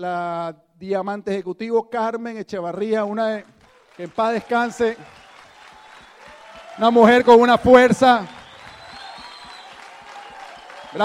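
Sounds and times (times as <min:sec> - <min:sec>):
speech: 0:00.0 - 0:05.2, 0:06.8 - 0:08.4
audience applause: 0:03.4 - 0:11.0.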